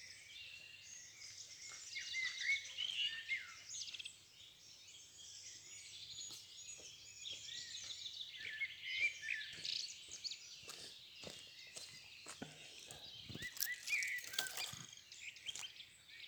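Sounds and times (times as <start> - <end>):
birds in a forest: 0.0 - 16.2.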